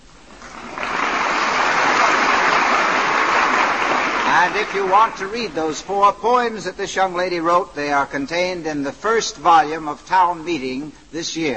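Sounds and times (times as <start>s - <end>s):
radio studio audience applauding a young poet: 0.3s - 5.9s
speech: 4.4s - 11.5s.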